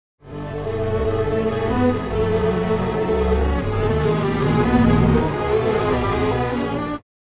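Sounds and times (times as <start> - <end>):
time-stretched strings: 0.2 - 7.0.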